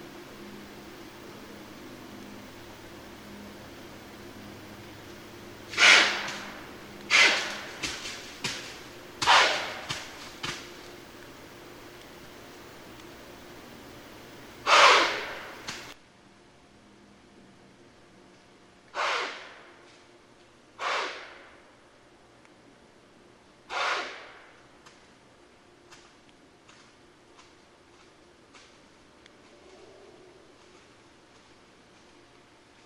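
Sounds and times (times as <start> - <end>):
White-tailed deer snorts: 5.7 - 8.2, 9.2 - 9.9, 14.6 - 15.5, 18.9 - 19.7, 20.8 - 21.5, 23.7 - 24.5.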